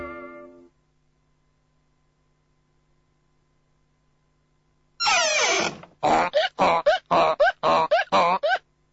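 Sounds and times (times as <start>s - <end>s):
donkey bray sound effect: 5.0s - 8.6s.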